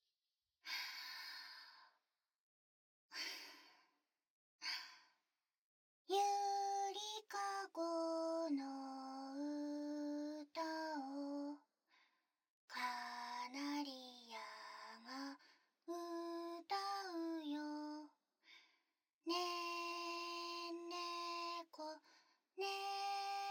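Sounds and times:
lullaby: 0:06.1 - 0:11.7, 0:12.7 - 0:18.2, 0:19.3 - 0:23.4.

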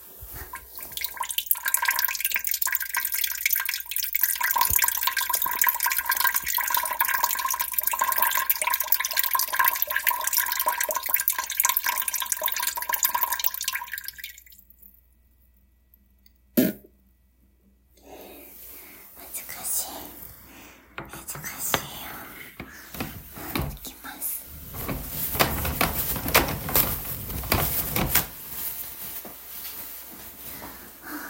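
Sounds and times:
person urinating after holding it in: 0:00.2 - 0:14.8, 0:22.5 - 0:23.9, 0:24.5 - 0:28.8.

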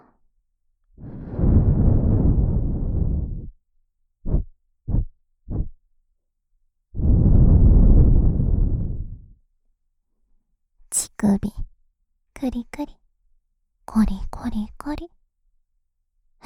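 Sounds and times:
breath blown into the microphone: 0:01.0 - 0:03.6, 0:07.0 - 0:09.4
speech: 0:12.4 - 0:13.0, 0:13.9 - 0:15.2.

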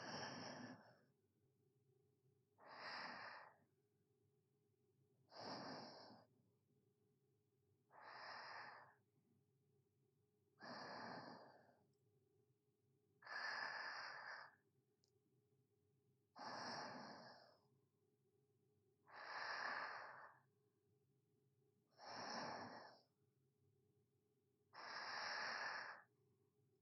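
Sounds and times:
sleeping breathing ASMR: 0:00.0 - 0:01.1, 0:02.6 - 0:03.6, 0:05.3 - 0:06.3, 0:07.9 - 0:09.0, 0:10.6 - 0:11.8, 0:13.2 - 0:14.6, 0:16.4 - 0:17.6, 0:19.1 - 0:20.4, 0:22.0 - 0:23.1, 0:24.8 - 0:26.1.

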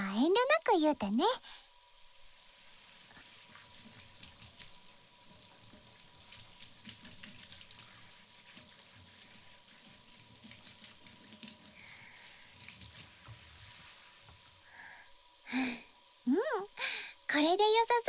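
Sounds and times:
speech: 0:00.2 - 0:01.6, 0:15.5 - 0:18.0
hot water poured over shin: 0:02.2 - 0:14.6.

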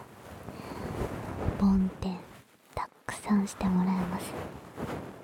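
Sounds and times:
breath blown softly into the ear: 0:00.4 - 0:01.5
speech: 0:01.6 - 0:02.2, 0:03.3 - 0:04.9.

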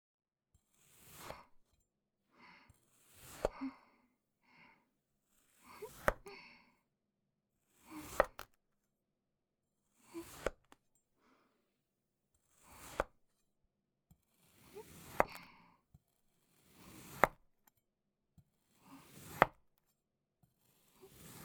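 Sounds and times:
cutting sand clay: 0:00.8 - 0:01.6, 0:02.9 - 0:03.6, 0:05.4 - 0:06.2, 0:07.8 - 0:08.5, 0:10.1 - 0:10.6, 0:12.5 - 0:13.2, 0:14.5 - 0:15.4, 0:16.6 - 0:17.4, 0:18.8 - 0:19.6, 0:20.7 - 0:21.4.

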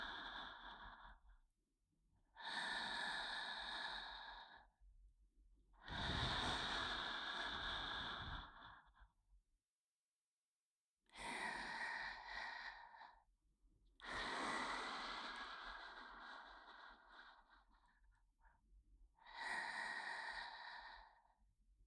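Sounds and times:
breathing in the left ear: 0:00.0 - 0:01.5, 0:02.3 - 0:04.8, 0:05.8 - 0:09.2, 0:11.1 - 0:13.4, 0:14.0 - 0:21.6.

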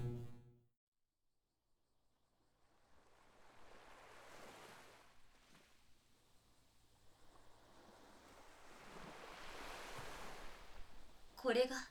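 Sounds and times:
ocean waves: 0:03.0 - 0:05.7, 0:07.3 - 0:11.8.

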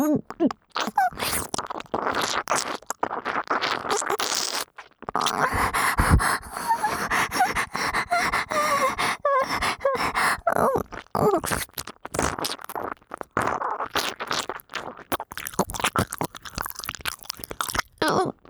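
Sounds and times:
saliva-heavy deep ear licking and sucking: 0:00.0 - 0:18.4
person moaning: 0:05.4 - 0:11.5.

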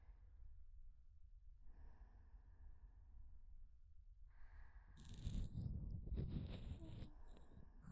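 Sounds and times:
ear cleaning sounds in the left channel: 0:05.0 - 0:07.5.

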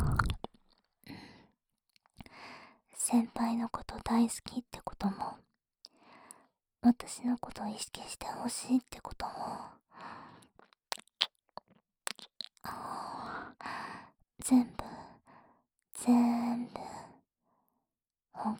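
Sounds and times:
ear licking: 0:00.0 - 0:00.5, 0:10.9 - 0:12.6
whispering: 0:03.0 - 0:05.4, 0:06.9 - 0:09.8, 0:14.4 - 0:15.1, 0:16.0 - 0:17.2, 0:18.4 - 0:18.5.

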